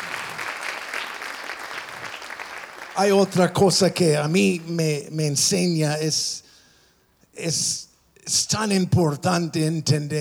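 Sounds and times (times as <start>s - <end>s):
audience applause: 0.0s - 4.6s
speech: 3.0s - 6.4s, 7.4s - 10.2s.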